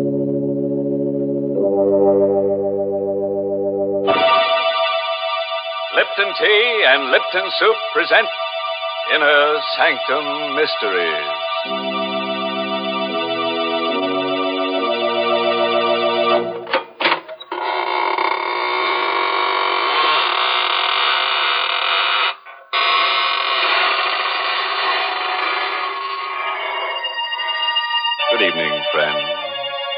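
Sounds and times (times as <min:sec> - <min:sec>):
steady organ-like tones: 0:00.0 - 0:17.5, 0:24.5 - 0:29.9
speech: 0:01.8 - 0:02.6, 0:06.0 - 0:08.4, 0:09.1 - 0:11.9
long drawn-out creaking door: 0:16.6 - 0:27.0.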